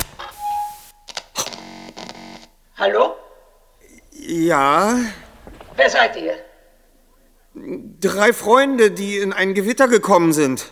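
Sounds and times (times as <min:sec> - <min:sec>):
fluorescent neon tube light flickering on: 0:00.0 - 0:01.8
speech: 0:02.8 - 0:03.2, 0:04.3 - 0:05.2, 0:05.8 - 0:06.5, 0:07.6 - 0:10.7.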